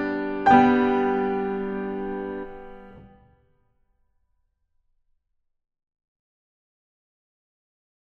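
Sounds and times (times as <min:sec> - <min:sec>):
Christmas song: 0:00.0 - 0:03.1.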